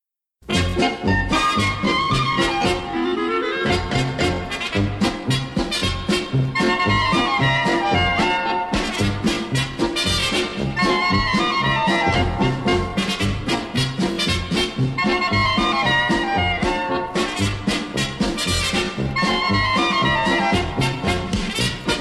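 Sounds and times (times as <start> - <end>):
krakowiak folk dance music: 0.0 - 21.9.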